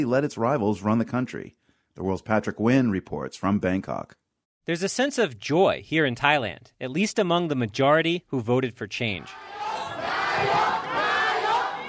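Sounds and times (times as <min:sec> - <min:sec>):
speech: 0:00.0 - 0:09.6
crowd of Thai voters chanting in Bangkok: 0:09.2 - 0:11.8.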